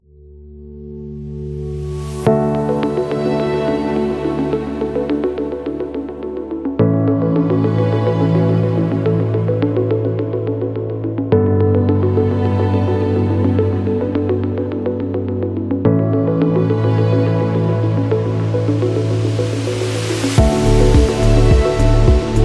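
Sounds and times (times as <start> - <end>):
technology documentary music: 1.2 - 22.4.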